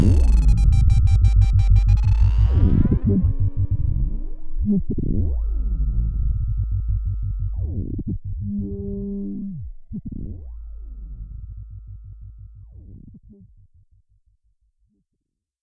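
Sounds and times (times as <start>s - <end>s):
synthesizer VC LFO modulated tone: 0.0s - 7.8s.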